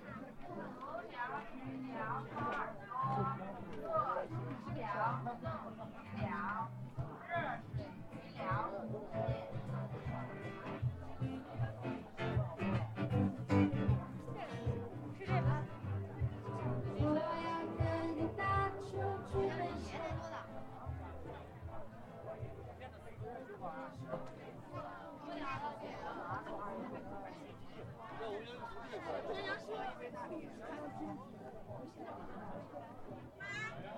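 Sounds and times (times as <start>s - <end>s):
crowd chatter at Hongyadong in Chongqing: 0.0s - 33.9s.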